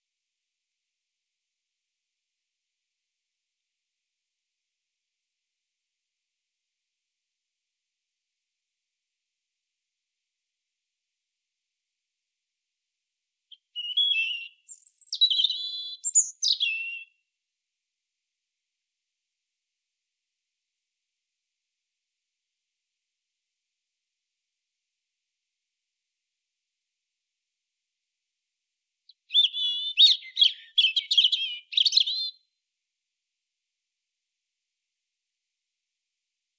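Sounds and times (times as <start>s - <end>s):
European robin song: 13.5s - 17.2s, 29.1s - 32.4s.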